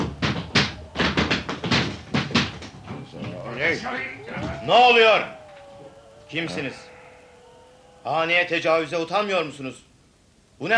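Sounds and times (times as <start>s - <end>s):
door being broken down with heavy blows: 0.0s - 3.4s
low rumbling background: 0.8s - 10.6s
speech: 3.6s - 5.4s, 6.3s - 6.9s, 8.0s - 9.8s, 10.6s - 10.7s.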